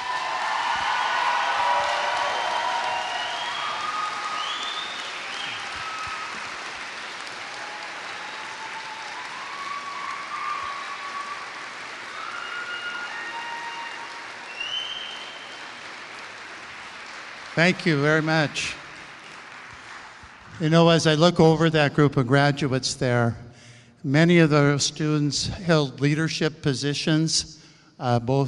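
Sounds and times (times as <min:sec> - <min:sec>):
audience applause for graduates: 0:00.0 - 0:21.1
high whistles: 0:00.7 - 0:06.5, 0:07.7 - 0:15.9
speech: 0:17.6 - 0:18.8, 0:20.6 - 0:23.4, 0:24.0 - 0:28.4.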